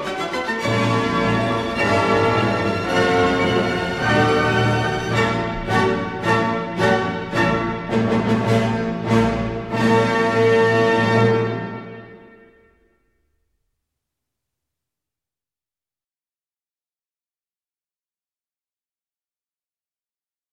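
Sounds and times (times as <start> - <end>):
piano concerto: 0.0 - 12.6.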